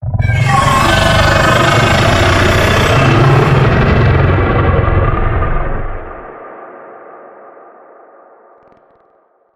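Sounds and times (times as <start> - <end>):
vocal stinger: 0.0 - 5.0.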